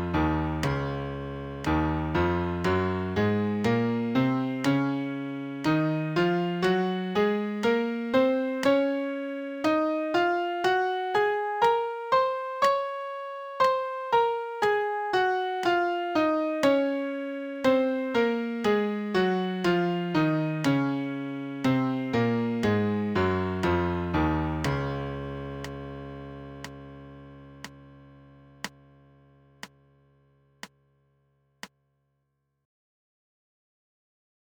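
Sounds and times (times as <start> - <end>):
MIDI major scale: 0.0 - 25.2.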